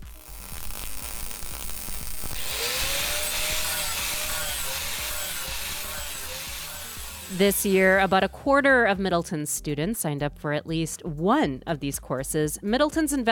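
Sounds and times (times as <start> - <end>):
loud steady crackling hiss of welding: 0.0 - 8.0
low hum in a high school welding lab: 0.0 - 8.3
speech: 7.3 - 13.2.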